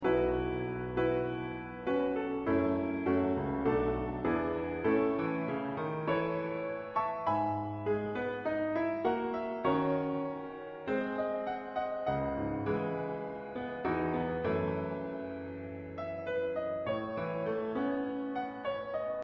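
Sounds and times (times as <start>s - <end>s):
piano: 0.0s - 19.2s.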